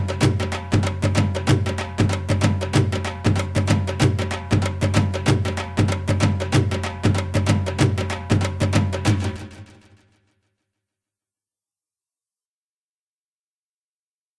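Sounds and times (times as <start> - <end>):
dhol rhythm: 0.0 - 9.9.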